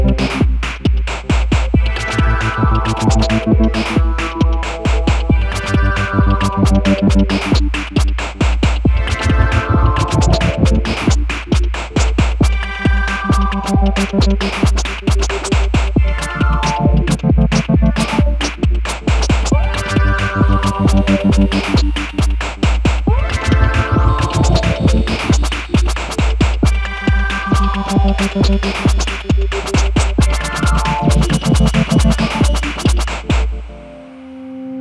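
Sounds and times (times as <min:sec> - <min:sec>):
synth drum: 0:00.0 - 0:33.6.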